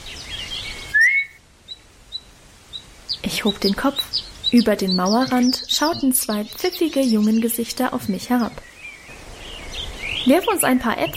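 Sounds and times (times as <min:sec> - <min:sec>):
soft but sharp whistle: 0:00.9 - 0:01.4
speech: 0:03.3 - 0:08.7, 0:10.3 - 0:11.1.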